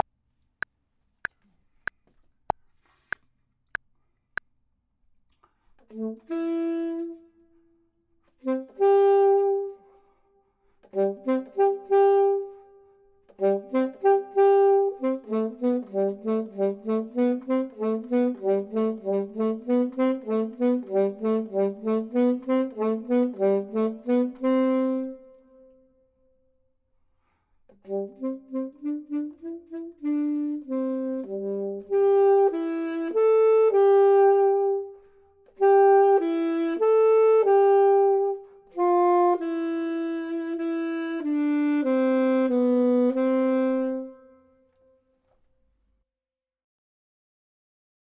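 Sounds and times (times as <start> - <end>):
clarinet: 5.8 - 26.2, 27.7 - 45.3
saxophone: 5.8 - 26.2, 27.2 - 45.3.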